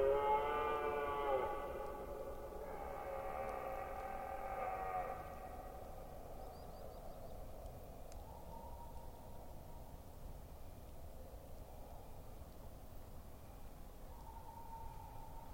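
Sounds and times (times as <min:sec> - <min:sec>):
red deer stag roaring during the rut in Forêt d'Orleans, France: 0:00.0 - 0:05.7.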